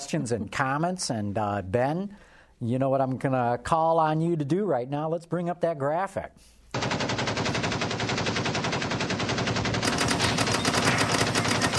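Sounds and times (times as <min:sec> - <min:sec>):
speech: 0:00.1 - 0:06.8
sustained machine gun fire: 0:06.7 - 0:11.7.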